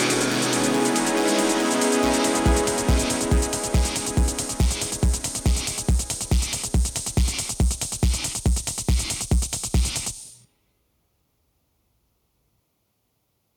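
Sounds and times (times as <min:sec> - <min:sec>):
techno music: 0:00.0 - 0:10.3.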